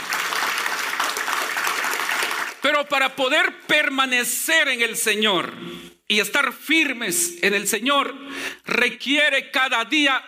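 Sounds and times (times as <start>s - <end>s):
audience applause: 0.0s - 2.6s
speech: 2.6s - 10.2s.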